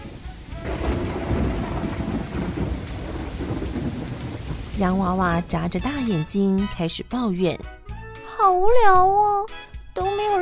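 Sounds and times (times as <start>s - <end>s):
rain falling: 0.0s - 6.7s
speech: 4.8s - 7.8s, 8.4s - 10.4s.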